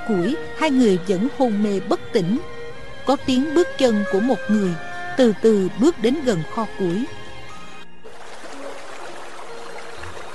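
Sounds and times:
speech: 0.1 - 2.5, 3.1 - 7.2
water dripping: 8.1 - 10.3.

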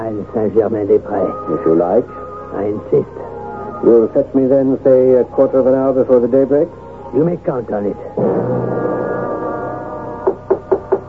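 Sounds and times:
speech: 0.1 - 8.9
knocking on a door: 10.2 - 11.0.

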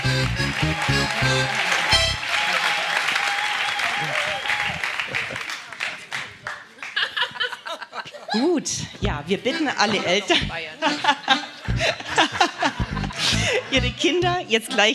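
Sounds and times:
music playing at a church service: 0.0 - 2.3, 10.0 - 10.6, 11.7 - 12.1, 12.8 - 14.6
church audience applauding at a service: 0.0 - 7.2
speech: 0.3 - 1.7, 8.4 - 12.0, 13.7 - 14.9
laughter: 3.9 - 14.9.

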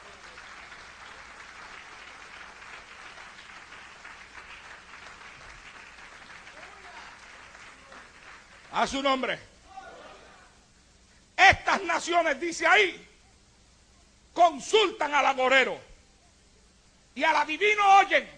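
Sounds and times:
congregation applause during a church sermon: 0.0 - 9.4
speech: 8.8 - 9.5, 12.0 - 13.1, 14.4 - 15.9, 17.2 - 18.3.

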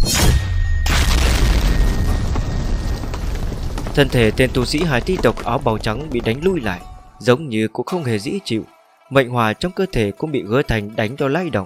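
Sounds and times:
loud explosion boom: 0.0 - 7.2
speech: 4.0 - 11.6.

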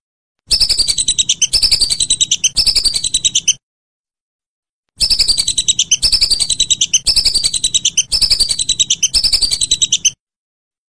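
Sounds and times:
whistling duck uttering shrill whistled notes: 0.5 - 3.6, 5.0 - 10.2.

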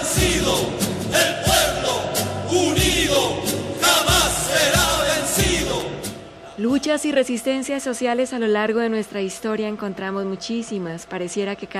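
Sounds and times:
large protest crowd chanting a slogan: 0.0 - 6.6
speech: 6.6 - 11.7.

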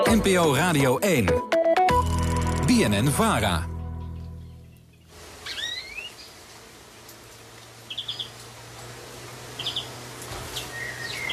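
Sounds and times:
speech: 0.1 - 2.0, 2.7 - 3.7
steady hiss: 4.9 - 11.2
greenfinch pair calling near bird feeder: 5.4 - 6.4, 7.8 - 8.4, 9.6 - 11.2.

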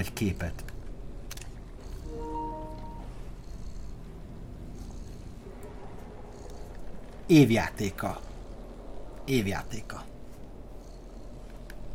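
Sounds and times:
speech: 0.0 - 0.7, 7.3 - 8.3, 9.3 - 10.1
video game cat purring: 0.0 - 11.9.

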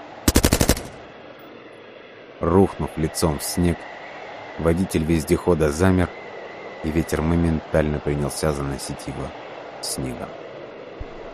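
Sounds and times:
submachine gun burst: 0.3 - 1.0
speech: 2.4 - 4.0, 4.6 - 6.2, 6.8 - 10.4.

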